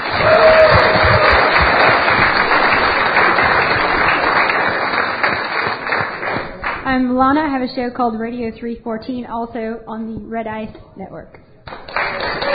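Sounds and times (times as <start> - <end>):
round of applause: 0.0 - 6.8, 11.7 - 12.5
speech: 7.0 - 11.4.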